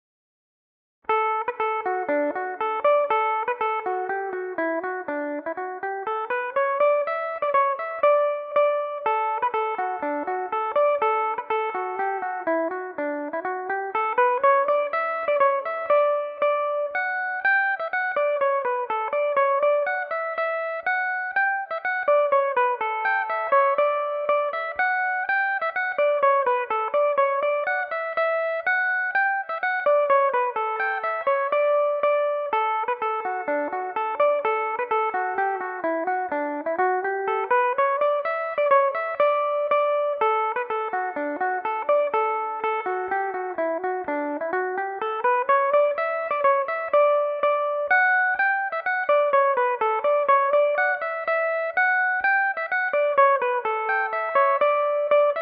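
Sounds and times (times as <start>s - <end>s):
Irish mandolin playing in D major: 1.1s - 55.4s.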